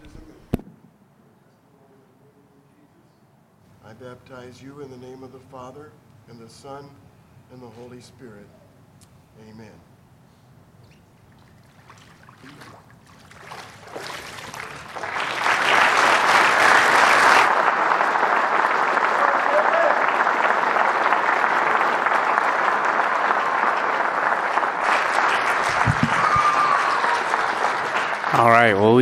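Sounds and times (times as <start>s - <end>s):
speech: 3.9s - 8.6s, 9.4s - 9.9s, 28.8s - 29.0s
audience applauding after a baptism in a large room: 13.4s - 29.0s.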